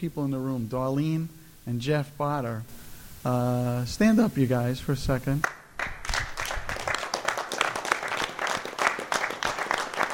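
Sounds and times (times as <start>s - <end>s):
speech: 0.0s - 5.6s
audience clapping: 5.4s - 10.1s.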